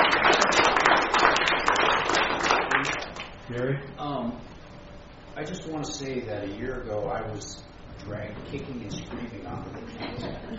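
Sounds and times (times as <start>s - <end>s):
group of people clapping: 0.0s - 3.4s
speech: 3.6s - 4.5s, 5.4s - 10.5s.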